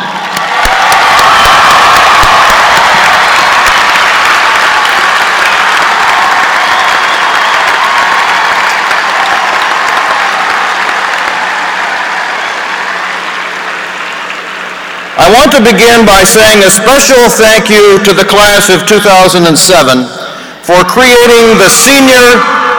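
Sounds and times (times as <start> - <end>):
commencement audience applause and cheering honoring mothers: 0.0 - 17.3
speech: 15.2 - 22.6.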